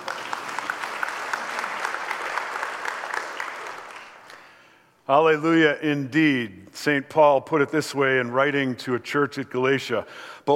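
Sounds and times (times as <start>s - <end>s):
audience clapping: 0.0s - 4.8s
speech: 5.1s - 10.5s.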